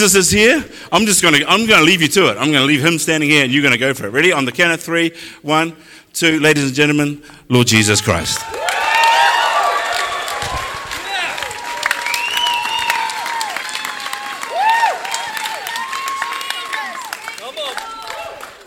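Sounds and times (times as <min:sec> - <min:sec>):
speech: 0:00.0 - 0:08.7
crowd applauding: 0:08.4 - 0:18.6
whoops and cheers: 0:08.4 - 0:18.6.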